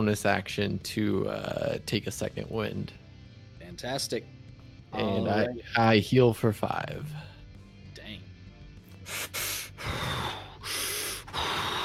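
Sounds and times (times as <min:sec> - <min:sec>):
speech: 0:00.0 - 0:03.0, 0:03.8 - 0:07.3
heavy rasping breathing of a player voicing a fighter: 0:08.9 - 0:11.8.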